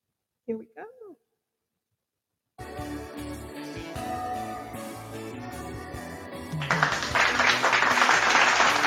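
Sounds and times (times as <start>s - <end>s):
music playing: 2.6s - 8.8s
cheering and clapping: 6.5s - 8.8s.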